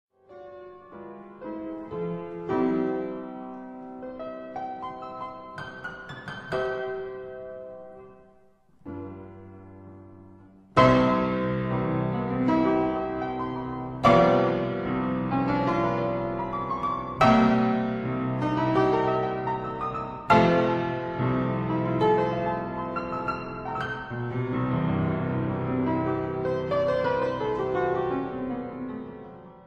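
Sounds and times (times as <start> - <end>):
keyboard sonata andante: 0.2 - 29.6.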